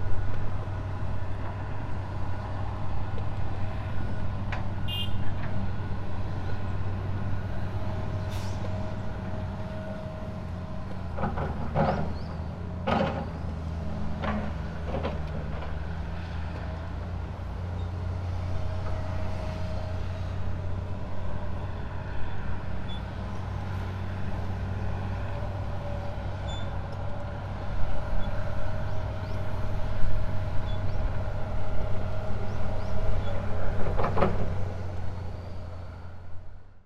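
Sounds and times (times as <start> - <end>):
construction noise in Fukushima: 0.0 - 36.8.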